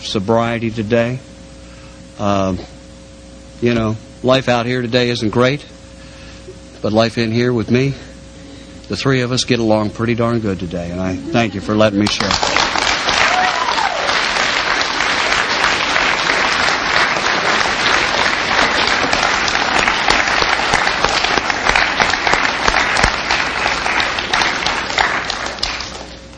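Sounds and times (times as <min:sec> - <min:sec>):
speech: 0:00.1 - 0:01.3, 0:02.2 - 0:02.8, 0:03.6 - 0:05.7, 0:06.8 - 0:08.1, 0:08.9 - 0:12.6
audience applause: 0:12.0 - 0:26.2.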